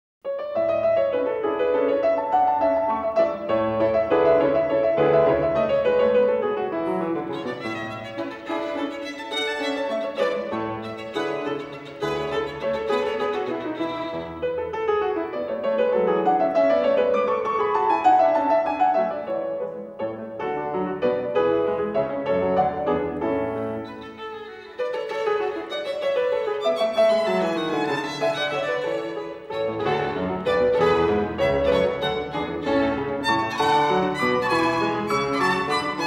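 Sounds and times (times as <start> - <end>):
violin sonata in A major, allegro variation: 0.3 - 36.0.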